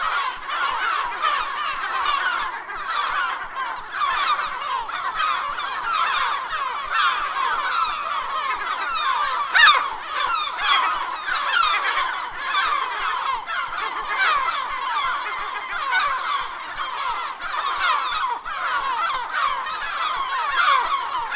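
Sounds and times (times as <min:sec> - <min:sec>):
gulls calling: 0:00.0 - 0:21.3.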